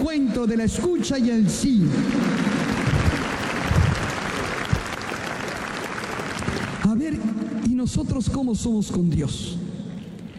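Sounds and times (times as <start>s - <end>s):
speech: 0.0s - 2.6s, 6.9s - 9.7s
audience applause: 1.6s - 7.4s.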